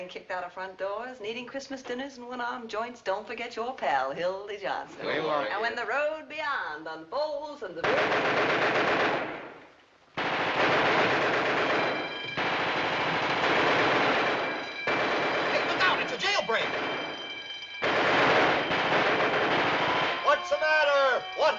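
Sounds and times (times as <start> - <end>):
speech: 0.1 - 9.4
rapid gunfire: 7.8 - 9.6, 10.2 - 20.4.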